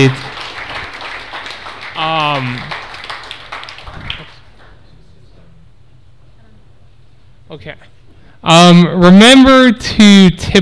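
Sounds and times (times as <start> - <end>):
speech: 0.0 - 0.3, 2.4 - 2.7, 7.6 - 10.6
crowd applause: 0.0 - 4.8.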